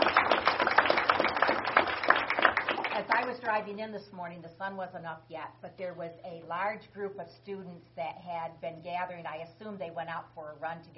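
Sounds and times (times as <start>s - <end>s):
audience round of applause: 0.0s - 3.3s
speech: 3.2s - 10.9s.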